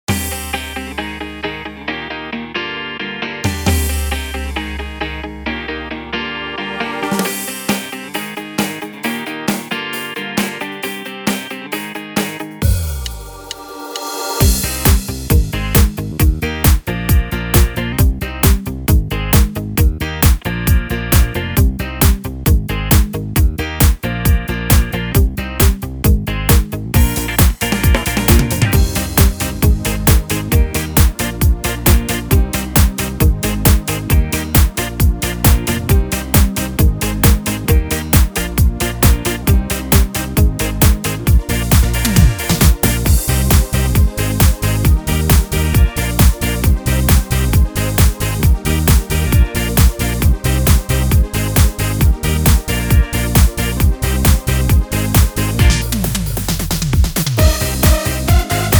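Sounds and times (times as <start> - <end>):
disco music with bongos: 0.0 - 1.2, 3.4 - 5.7, 6.6 - 58.7.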